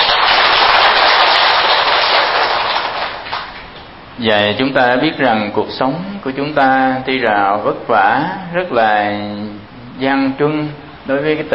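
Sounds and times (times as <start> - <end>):
audience applause: 0.0 - 3.8
speech: 4.2 - 11.5.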